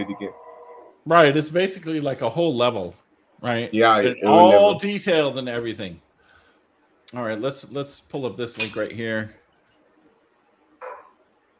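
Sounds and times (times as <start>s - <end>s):
speech: 0.0s - 0.4s, 1.0s - 6.0s, 7.1s - 9.4s
dogs barking: 10.8s - 11.2s.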